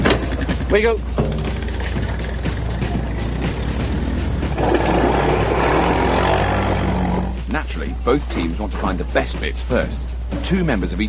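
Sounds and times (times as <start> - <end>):
quad bike engines droning and revving: 0.0 - 7.5
speech: 0.7 - 1.2, 7.6 - 11.0.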